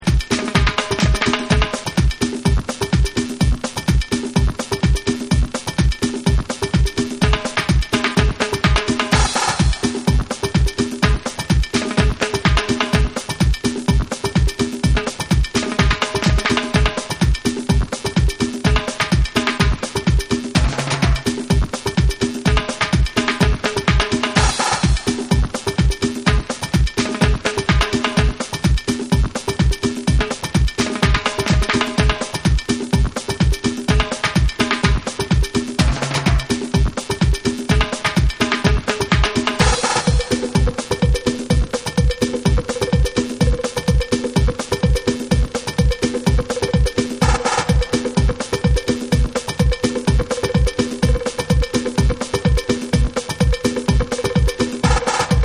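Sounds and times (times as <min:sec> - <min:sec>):
beats: 0:00.0 - 0:55.4.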